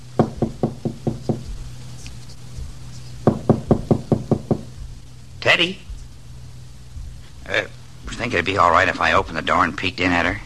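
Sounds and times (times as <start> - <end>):
light tapping knock on a door: 0.2 - 1.7, 2.6 - 5.0
speech: 5.5 - 5.8, 7.5 - 10.4.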